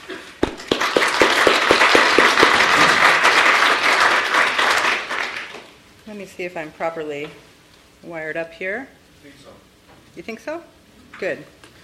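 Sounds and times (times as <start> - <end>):
audience applause greeting a lecturer at an academic lecture series: 0.4 - 5.8
speech: 6.3 - 11.6.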